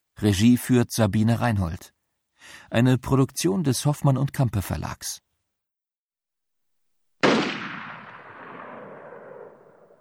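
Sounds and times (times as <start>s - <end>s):
speech: 0.2s - 5.2s
western-style gunshot with hissing whistling ricochet: 7.2s - 9.9s.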